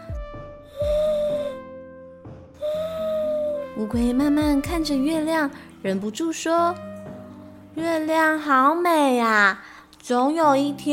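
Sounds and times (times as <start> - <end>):
owl hooting: 0.7 - 1.6, 2.6 - 3.8
speech: 3.8 - 6.9, 7.8 - 10.9.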